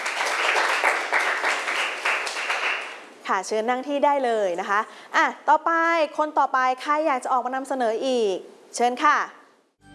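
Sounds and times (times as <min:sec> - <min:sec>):
classroom applause: 0:00.0 - 0:03.0
speech: 0:03.3 - 0:09.4.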